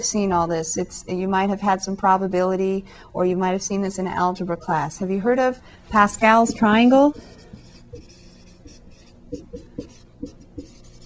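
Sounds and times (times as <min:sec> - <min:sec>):
speech: 0:00.0 - 0:08.1
handwriting during a mathematics lesson: 0:07.1 - 0:11.0.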